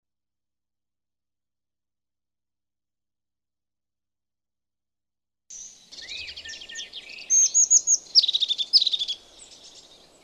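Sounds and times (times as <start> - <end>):
crested tit song: 5.5 - 10.2.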